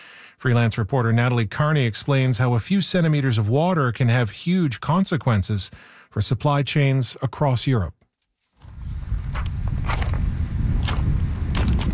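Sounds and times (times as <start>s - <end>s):
speech: 0.4s - 8.0s
footsteps on exposed dry riverbed of the River Rhine near Bingen: 8.4s - 11.9s.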